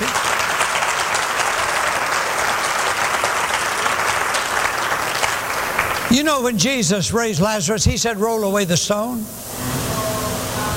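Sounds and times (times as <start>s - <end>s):
audience clapping: 0.0s - 6.5s
speech: 6.1s - 9.8s.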